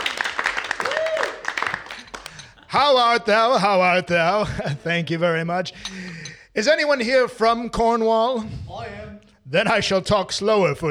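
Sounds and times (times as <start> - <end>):
audience applause for a comedian at a variety show: 0.0 - 2.7
person whooping: 0.8 - 2.1
speech: 2.8 - 10.9.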